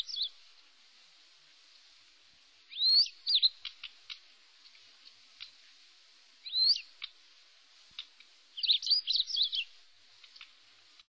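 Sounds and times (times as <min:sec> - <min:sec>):
Uragus sibiricus on Sakhalin: 0:00.0 - 0:00.6, 0:02.6 - 0:07.2, 0:07.8 - 0:10.7.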